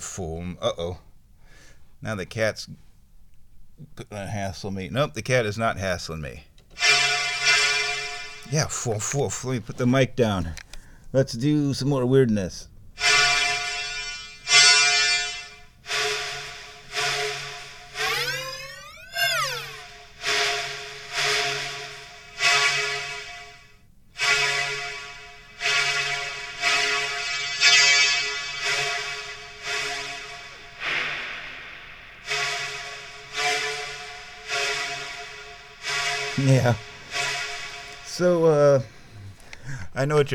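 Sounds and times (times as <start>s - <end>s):
speech: 0.1s - 1.1s, 2.0s - 2.9s, 3.8s - 6.9s, 8.5s - 13.1s, 40.0s - 40.3s
synthesized sound like blowing into PVC pipe: 6.7s - 9.5s, 13.0s - 40.3s.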